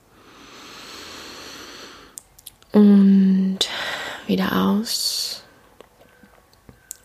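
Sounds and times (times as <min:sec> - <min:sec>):
deep breath in during a guided relaxation exercise: 0:00.1 - 0:02.2, 0:03.6 - 0:04.3
speech: 0:02.8 - 0:03.0, 0:04.3 - 0:05.1.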